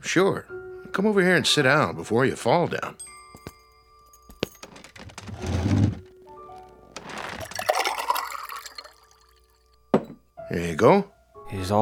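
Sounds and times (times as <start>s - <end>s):
speech: 0.0s - 3.1s, 10.6s - 11.8s
glass clink: 3.0s - 4.9s, 7.4s - 10.3s
water pouring into a glass: 7.0s - 9.8s.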